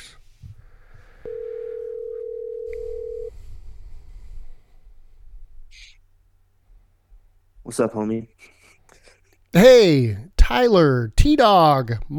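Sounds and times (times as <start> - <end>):
phone call ringing tone: 1.3 - 3.3
speech: 7.7 - 8.6, 9.5 - 12.1.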